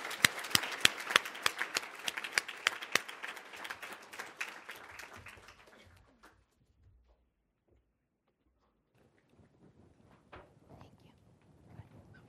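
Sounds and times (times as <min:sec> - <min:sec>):
audience applause welcoming a panel: 0:00.0 - 0:06.4.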